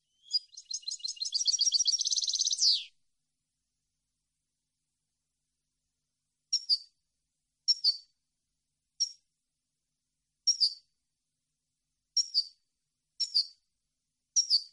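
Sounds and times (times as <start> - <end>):
European goldfinch twittering song: 0.0 - 3.0, 6.5 - 6.9, 7.7 - 8.0, 10.5 - 10.8, 12.2 - 12.6, 13.2 - 13.6, 14.4 - 14.7.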